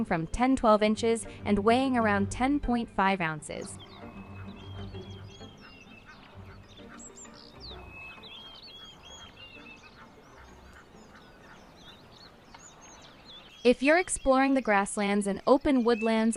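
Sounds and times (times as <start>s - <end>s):
speech: 0.0s - 3.8s, 13.6s - 16.3s
flock of crowned sandgrouse calling: 3.6s - 16.3s.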